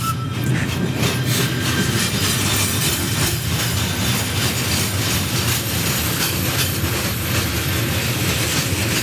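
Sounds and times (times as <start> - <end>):
train passing on railway beside a bridge: 0.0 - 9.0.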